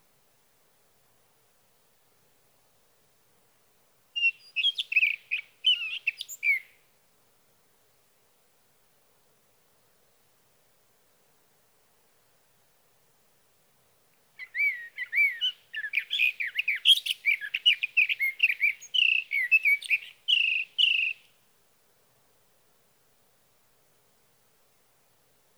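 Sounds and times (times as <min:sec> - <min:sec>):
sage thrasher singing: 0:04.2 - 0:06.7, 0:14.4 - 0:21.2.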